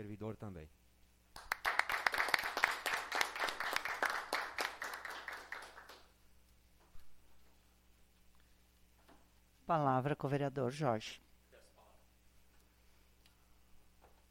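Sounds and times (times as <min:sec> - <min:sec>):
speech: 0:00.0 - 0:00.8, 0:09.7 - 0:11.2
group applauding: 0:01.3 - 0:06.2.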